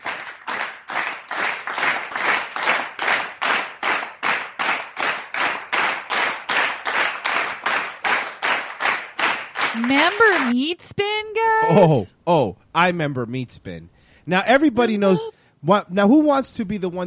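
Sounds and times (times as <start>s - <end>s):
slow clap: 0.0s - 10.6s
speech: 9.8s - 17.0s.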